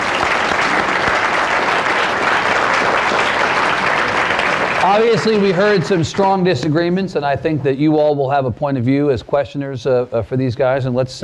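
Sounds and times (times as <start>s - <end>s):
sustained applause from a sizable crowd: 0.0s - 7.3s
speech: 4.9s - 11.2s.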